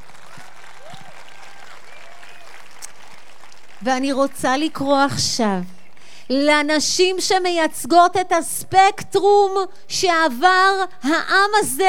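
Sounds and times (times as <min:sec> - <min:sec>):
audience applause: 0:00.0 - 0:04.0
speech: 0:03.8 - 0:11.8.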